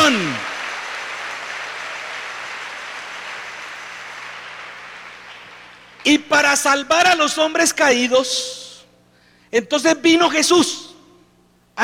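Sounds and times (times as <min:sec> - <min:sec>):
crowd applauding: 0:00.0 - 0:06.0
speech: 0:06.0 - 0:08.7, 0:09.5 - 0:10.9.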